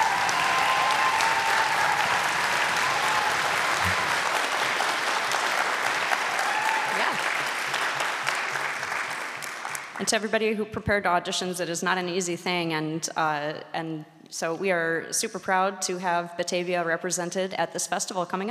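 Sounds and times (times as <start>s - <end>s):
audience applause: 0.0s - 10.0s
speech: 10.0s - 18.4s.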